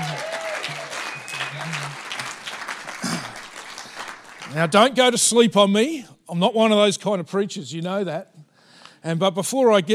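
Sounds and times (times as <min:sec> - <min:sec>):
applause: 0:00.0 - 0:05.0
speech: 0:04.5 - 0:08.3, 0:09.0 - 0:09.9.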